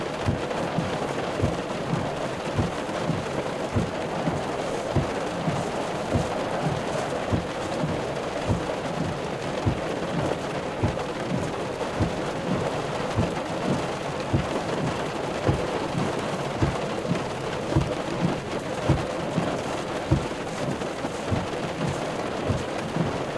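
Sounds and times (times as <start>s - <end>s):
rain: 0.0s - 23.3s.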